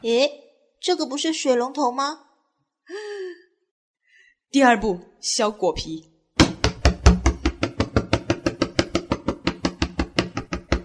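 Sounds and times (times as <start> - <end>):
speech: 0.0 - 2.3, 4.5 - 6.1
knife chopping on a cutting board: 6.4 - 10.8.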